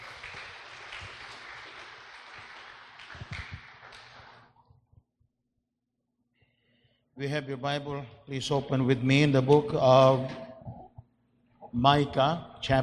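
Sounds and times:
audience applause: 0.0s - 4.5s
speech: 7.2s - 10.4s, 11.7s - 12.8s.

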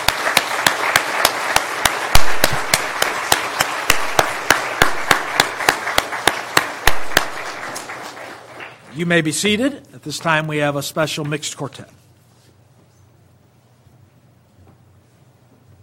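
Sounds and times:
church audience applauding: 0.0s - 8.9s
speech: 9.0s - 12.0s.

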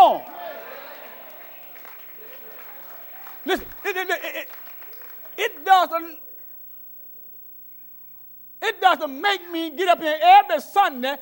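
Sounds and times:
audience clapping hands: 1.0s - 5.5s
speech: 3.4s - 4.7s, 5.4s - 6.3s, 8.6s - 11.2s.

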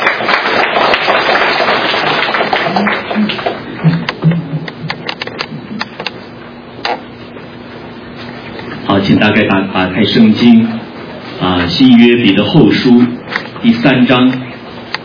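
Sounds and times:
crowd applauding welcoming the preacher: 0.0s - 4.2s
speech: 9.1s - 10.8s, 11.4s - 14.4s.

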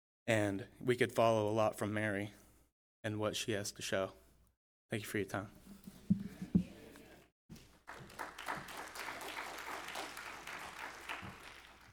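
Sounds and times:
speech: 0.3s - 2.4s, 3.0s - 4.2s, 4.9s - 5.7s
dull thumps: 5.8s - 6.8s
audience clapping: 7.6s - 11.9s.

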